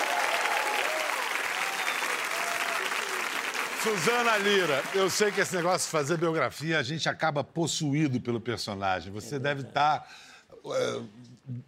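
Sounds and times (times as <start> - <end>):
faint cheers or voices: 0.0 - 3.3
sustained audience applause: 0.0 - 6.4
speech: 3.8 - 11.6.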